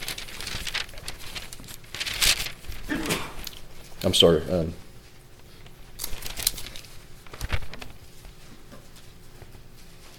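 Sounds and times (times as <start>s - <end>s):
thin Bible pages rustling as they are turned: 0.0s - 4.0s, 5.1s - 8.4s
speech: 4.0s - 4.8s.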